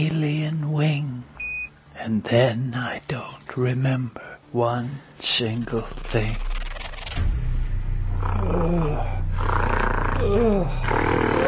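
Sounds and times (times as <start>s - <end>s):
speech: 0.0s - 1.3s, 2.0s - 6.5s, 8.4s - 9.6s, 10.2s - 11.4s
gorilla in a cage growling and grunting: 8.1s - 11.4s.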